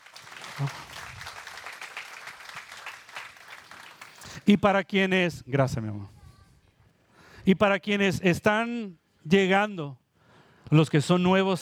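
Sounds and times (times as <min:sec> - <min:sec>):
audience applause: 0:00.0 - 0:04.2
speech: 0:00.6 - 0:00.9, 0:04.5 - 0:06.2, 0:07.4 - 0:10.0, 0:10.7 - 0:11.6.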